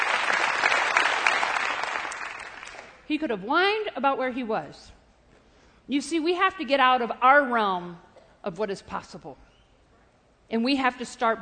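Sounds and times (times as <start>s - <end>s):
audience clapping during a church sermon: 0.0s - 3.0s
speech: 3.1s - 5.0s, 5.9s - 9.4s, 10.5s - 11.3s.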